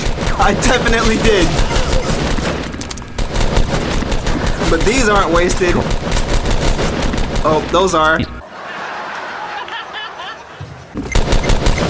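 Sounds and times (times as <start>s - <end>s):
video game gunfire: 0.0s - 8.4s, 11.0s - 11.8s
speech: 0.4s - 2.1s, 4.7s - 6.0s, 7.4s - 8.4s
laughter: 1.4s - 2.4s, 8.4s - 11.0s.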